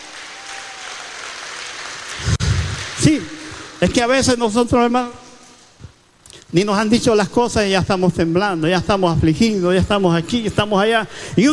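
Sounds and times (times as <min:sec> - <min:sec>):
audience applause: 0:00.0 - 0:03.7
speech: 0:03.0 - 0:05.2, 0:06.5 - 0:11.5.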